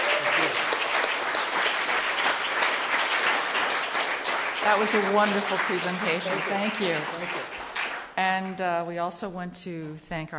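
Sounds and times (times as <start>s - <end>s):
audience applause: 0.0s - 8.2s
speech: 4.7s - 7.6s, 8.2s - 10.3s.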